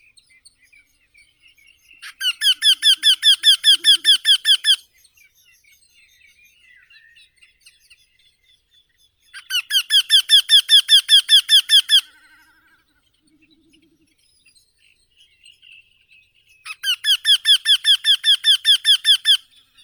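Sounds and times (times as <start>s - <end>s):
Eurasian wryneck Jynx torquilla calling: 2.0s - 4.8s, 9.4s - 12.2s, 16.7s - 19.6s.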